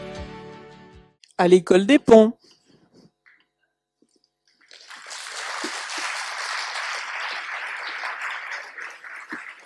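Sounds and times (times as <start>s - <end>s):
speech: 1.4s - 2.4s
audience applause: 4.7s - 9.6s.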